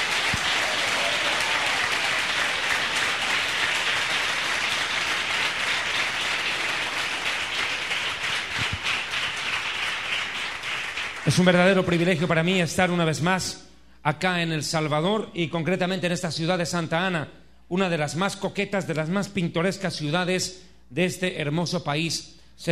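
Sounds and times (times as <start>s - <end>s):
large crowd applauding: 0.0s - 12.1s
speech: 11.3s - 22.7s.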